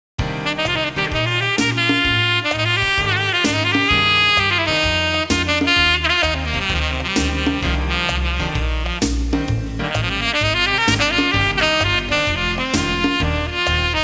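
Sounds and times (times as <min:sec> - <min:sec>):
jazz music ringtone: 0:00.2 - 0:14.0.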